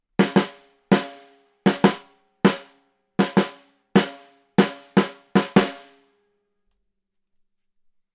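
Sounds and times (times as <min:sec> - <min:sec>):
snare drum recorded with Neumann KM 184: 0:00.2 - 0:06.0.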